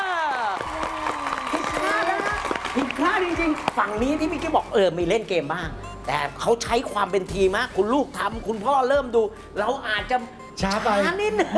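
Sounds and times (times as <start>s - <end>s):
people clapping: 0.0s - 4.4s
speech: 3.0s - 11.5s.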